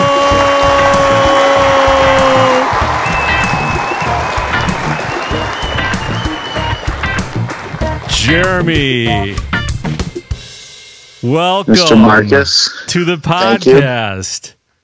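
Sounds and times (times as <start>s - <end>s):
audience applauding and cheering to welcome a podcast guest: 0.0s - 8.9s
speech: 8.3s - 9.4s, 11.2s - 14.6s.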